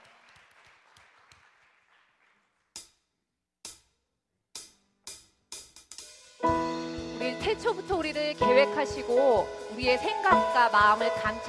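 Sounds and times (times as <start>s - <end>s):
congregation applause: 0.0s - 2.6s
speech: 7.6s - 11.4s.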